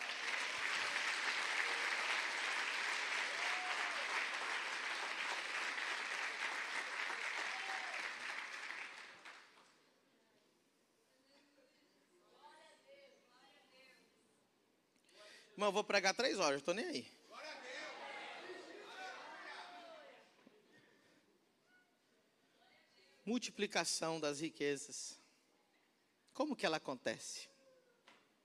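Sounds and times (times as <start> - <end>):
audience clapping: 0.0 - 9.7
speech: 15.6 - 17.2, 23.3 - 25.2, 26.4 - 27.5.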